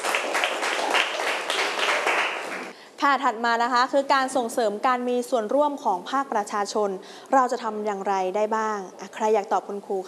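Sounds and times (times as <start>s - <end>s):
classroom applause for a student who answered correctly: 0.0s - 2.7s
speech: 3.0s - 10.0s.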